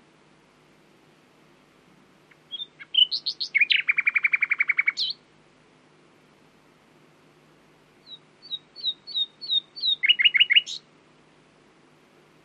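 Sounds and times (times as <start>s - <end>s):
common nightingale Luscinia megarhynchos singing: 2.2s - 5.3s, 8.0s - 10.9s.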